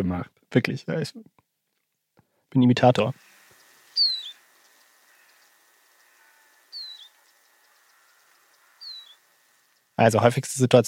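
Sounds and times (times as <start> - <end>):
speech: 0.0 - 1.3, 2.5 - 3.3, 10.0 - 10.8
Eurasian siskin giving plaintive descending calls: 3.0 - 10.2.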